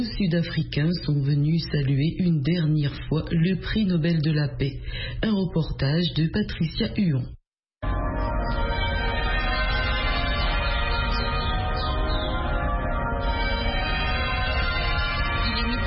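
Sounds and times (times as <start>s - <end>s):
speech: 0.0s - 7.4s
Saint-Georges cathedral bells ringing: 7.8s - 15.8s.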